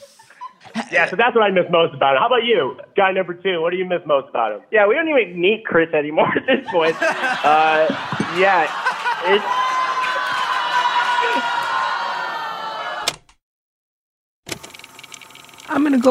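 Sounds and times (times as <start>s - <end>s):
laughter: 0.0s - 1.8s, 6.2s - 12.4s
speech: 0.9s - 9.6s, 15.9s - 16.0s
Detroit audience booing: 6.7s - 13.1s.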